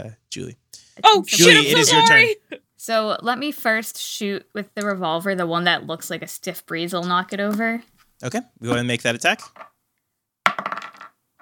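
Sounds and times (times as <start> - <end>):
speech: 0.0 - 9.7
die rolling onto hard tabletop: 10.5 - 11.2.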